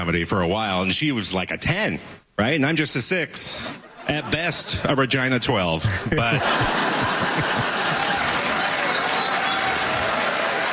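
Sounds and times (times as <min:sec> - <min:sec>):
speech: 0:00.0 - 0:07.1
laughter: 0:03.6 - 0:05.1, 0:05.8 - 0:10.7
audience applause at a comedy show in Winnipeg: 0:06.5 - 0:10.7.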